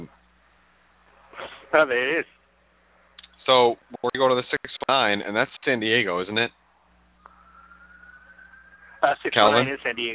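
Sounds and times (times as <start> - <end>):
low hum: 0.0 - 10.1
speech: 1.7 - 2.4, 3.4 - 6.6, 9.0 - 10.1
emergency vehicle siren: 7.2 - 10.1.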